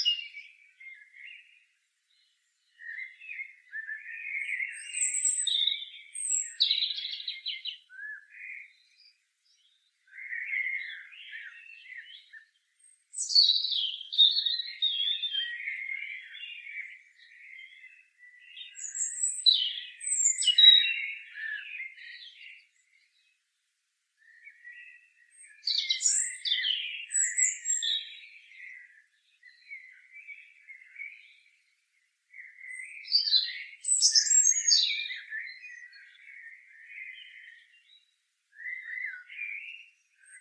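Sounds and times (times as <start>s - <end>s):
European robin singing: 0.0s - 23.6s, 24.2s - 40.4s.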